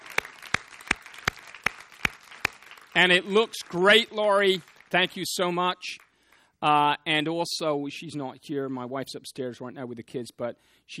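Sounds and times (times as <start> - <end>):
hands clapping in a round of applause for helpers: 0.0 - 6.5
speech: 3.0 - 6.0, 6.6 - 10.9.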